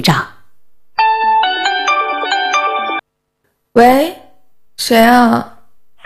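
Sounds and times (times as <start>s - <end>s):
speech: 0.0s - 0.3s, 3.8s - 4.2s, 4.8s - 5.5s
electronic phone ringtone melody: 1.0s - 3.0s.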